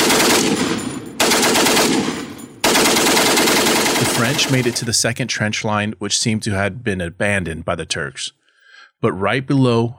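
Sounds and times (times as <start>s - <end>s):
Turkish rifle and machine gun fire: 0.0s - 5.0s
speech: 4.3s - 8.4s, 9.0s - 9.9s.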